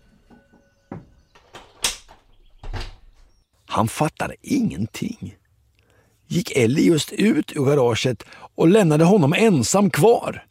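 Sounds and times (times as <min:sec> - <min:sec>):
door slamming shut: 0:00.9 - 0:03.3
door handle clicks and rattles: 0:01.0 - 0:03.3
speech: 0:03.7 - 0:05.4, 0:06.3 - 0:10.5.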